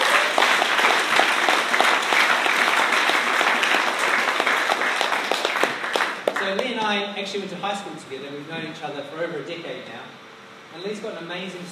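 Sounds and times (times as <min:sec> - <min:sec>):
audience applause: 0:00.0 - 0:06.7
speech: 0:06.4 - 0:11.7.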